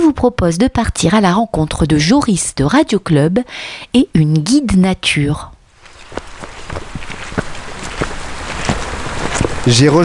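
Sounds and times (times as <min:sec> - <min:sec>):
speech: 0:00.1 - 0:05.5, 0:09.6 - 0:10.0
winter rain falling by a forest pond: 0:05.6 - 0:10.0.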